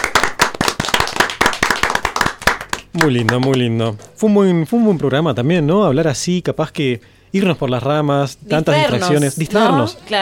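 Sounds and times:
sharp hand claps from a small group celebrating a milestone: 0.0 - 3.8
speech: 2.9 - 10.2.

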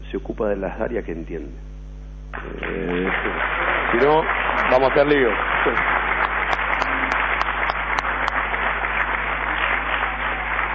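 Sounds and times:
speech: 0.1 - 1.7, 2.3 - 6.0
audience applause: 2.4 - 10.7.

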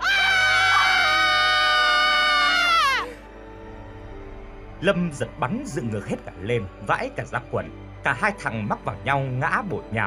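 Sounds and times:
two people screaming loudly together: 0.0 - 3.2
speech: 4.8 - 10.0.

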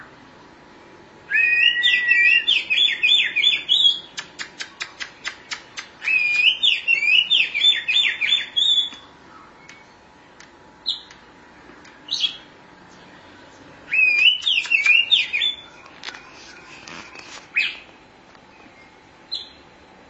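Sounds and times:
Oriental magpie-robin song: 1.4 - 4.2, 6.0 - 10.1, 10.8 - 11.1, 12.1 - 12.5, 13.9 - 15.8, 19.3 - 19.7.

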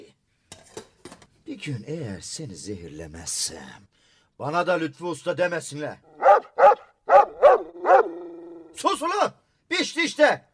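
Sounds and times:
speech: 1.5 - 6.2, 8.8 - 10.5
dog barking: 6.2 - 8.6.

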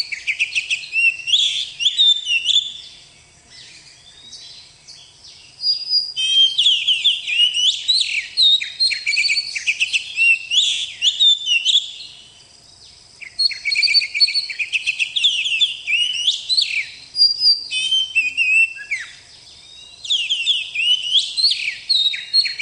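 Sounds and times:
Oriental magpie-robin singing: 0.0 - 22.5.

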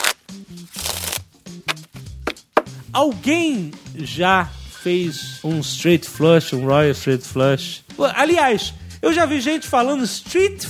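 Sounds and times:
Jovem Nerd playing cards being shuffled: 0.0 - 2.0
speech: 0.3 - 1.3, 2.9 - 10.6.

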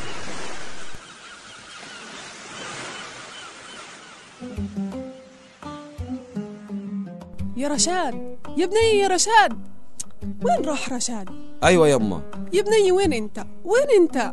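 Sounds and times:
high sea waves crashing: 0.0 - 7.2
loud honking bird cries: 0.8 - 6.6
speech: 7.6 - 14.3.

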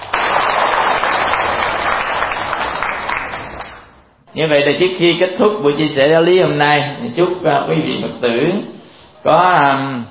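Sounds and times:
audience clapping at a Buddhist dharma talk: 0.0 - 4.0
speech: 4.4 - 10.0.

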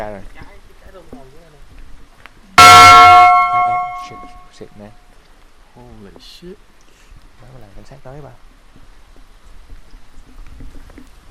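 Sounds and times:
speech: 0.0 - 0.4, 4.1 - 5.1, 5.8 - 6.7, 7.4 - 8.8
bell struck and ringing: 2.6 - 4.5.

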